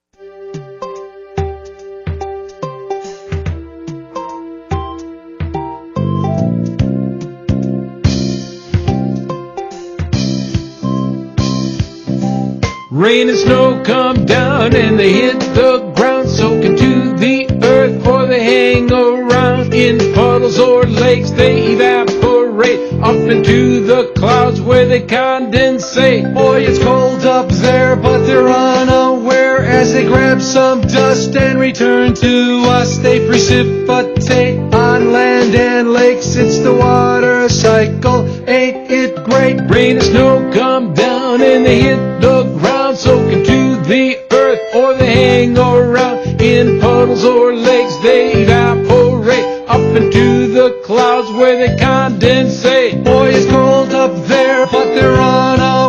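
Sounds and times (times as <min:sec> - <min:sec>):
song about the water cycle: 0:00.2 - 0:55.8.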